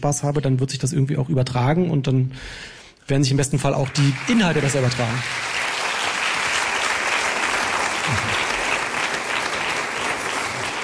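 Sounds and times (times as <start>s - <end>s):
speech: 0.0s - 5.6s
audience applause: 3.8s - 10.8s.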